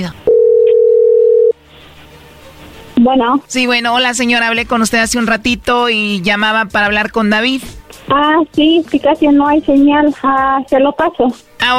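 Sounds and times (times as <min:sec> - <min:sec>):
speech: 0:00.0 - 0:00.2, 0:03.0 - 0:11.7
telephone call connecting tone: 0:00.3 - 0:01.6.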